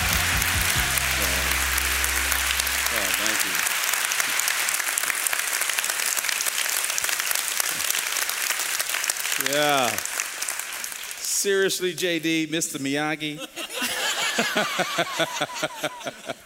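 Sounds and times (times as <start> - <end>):
tonal sounds: 0.0 - 4.0
church audience applause welcoming a guest preacher: 0.0 - 11.3, 13.9 - 16.4
speech: 11.4 - 13.6, 14.4 - 16.4
laughter: 13.3 - 16.4.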